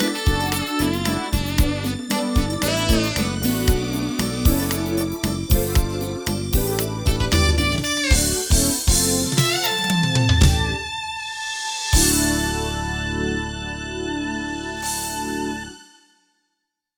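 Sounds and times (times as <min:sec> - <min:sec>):
Roland SC-55mkII General MIDI synthesizer: 0:00.0 - 0:16.1.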